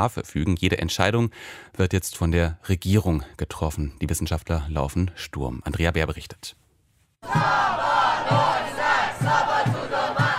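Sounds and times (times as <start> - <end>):
speech: 0.0 - 6.6, 7.2 - 9.8
large crowd of protesters chanting in unison: 7.2 - 10.3.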